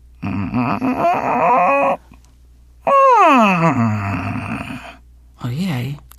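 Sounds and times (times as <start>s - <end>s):
voice imitating a talking vacuum cleaner: 0.2s - 2.1s, 2.8s - 5.0s
speech: 0.5s - 2.0s.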